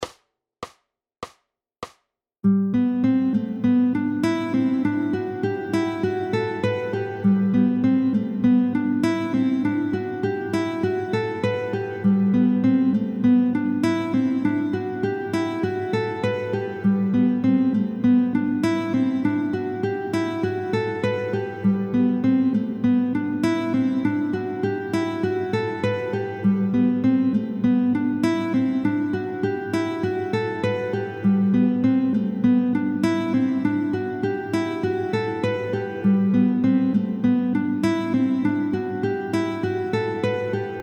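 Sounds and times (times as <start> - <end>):
guitar sequencing exercise: 2.4 - 40.8.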